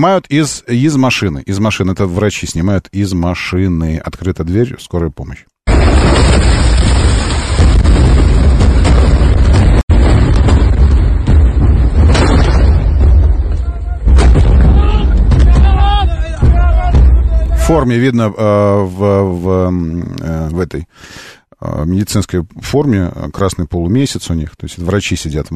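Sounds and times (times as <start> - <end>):
speech: 0.0 - 6.6, 17.7 - 25.5
bombs exploding: 5.7 - 17.8.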